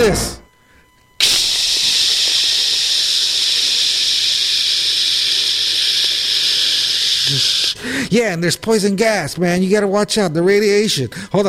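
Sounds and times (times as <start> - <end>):
speech: 0.0 - 0.4, 7.3 - 11.4
aerosol disinfectant spray hissing: 1.2 - 8.0.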